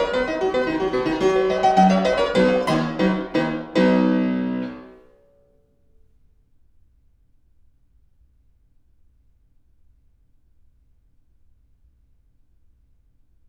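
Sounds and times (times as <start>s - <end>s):
piano sonata in C, rondo allegro: 0.0s - 5.0s.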